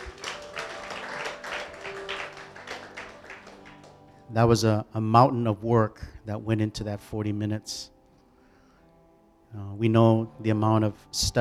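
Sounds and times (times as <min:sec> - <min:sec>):
audience applause: 0:00.0 - 0:04.1
speech: 0:04.3 - 0:08.0, 0:09.5 - 0:11.3.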